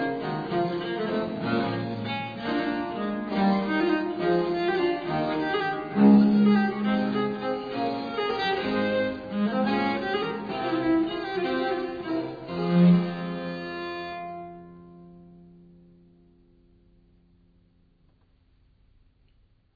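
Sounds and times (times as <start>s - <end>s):
viol playing a gigue: 0.0s - 15.7s.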